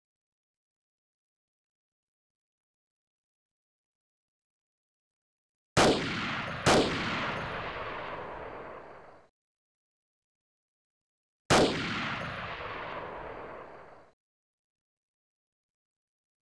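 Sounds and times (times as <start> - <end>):
sniper rifle shot: 5.8 - 9.3, 11.5 - 14.2.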